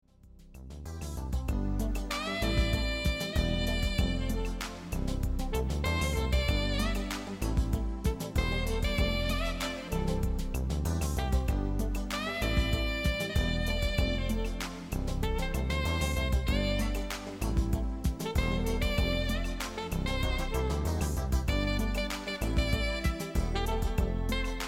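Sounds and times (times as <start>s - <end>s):
saxophone: 0.9s - 24.6s.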